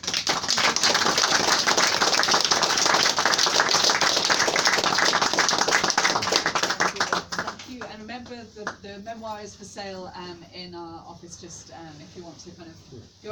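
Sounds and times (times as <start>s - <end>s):
room of people applauding after a talk: 0.0s - 8.8s
speech: 9.2s - 13.3s.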